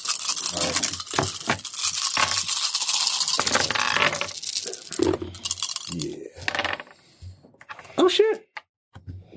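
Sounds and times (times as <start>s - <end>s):
dice being rolled: 0.0s - 6.9s
speech: 8.0s - 8.5s.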